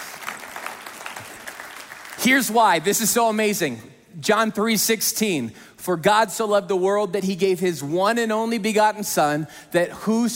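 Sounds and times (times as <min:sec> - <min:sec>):
audience clapping: 0:00.0 - 0:03.2
speech: 0:02.2 - 0:10.3.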